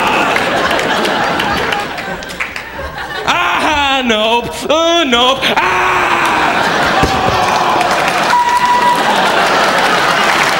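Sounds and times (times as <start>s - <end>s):
audience applause: 0.0s - 3.2s, 6.2s - 10.5s
laughter: 0.0s - 10.5s
speech: 4.0s - 6.2s.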